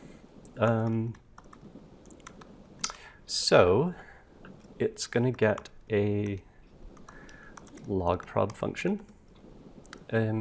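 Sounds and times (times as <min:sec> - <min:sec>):
speech: 0:00.6 - 0:01.2, 0:03.3 - 0:04.1, 0:04.8 - 0:06.5, 0:07.9 - 0:09.1, 0:10.1 - 0:10.3
computer keyboard typing: 0:00.6 - 0:02.5, 0:04.5 - 0:08.7.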